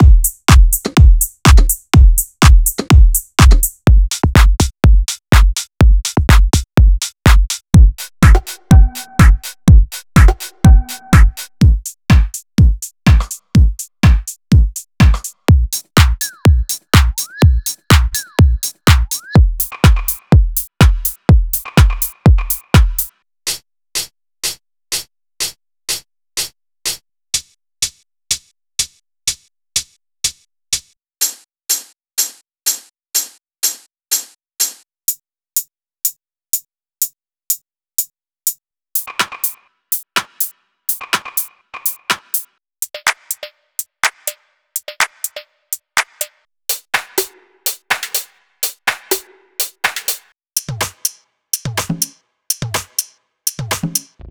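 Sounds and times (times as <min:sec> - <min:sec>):
deep house grooves: 0:00.0 - 0:23.1, 0:39.0 - 0:54.2.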